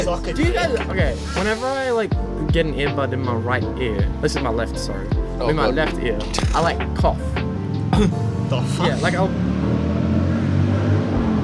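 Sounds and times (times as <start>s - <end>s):
speech: 0.0s - 7.4s, 8.0s - 9.9s
Harley motorcycle engine revving: 7.7s - 11.4s.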